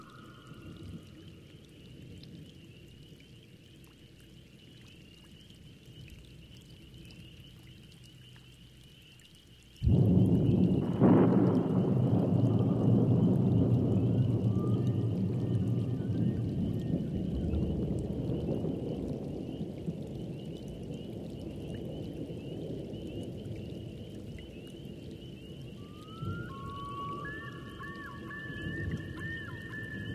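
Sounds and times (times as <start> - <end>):
thunderstorm: 9.8 - 30.1.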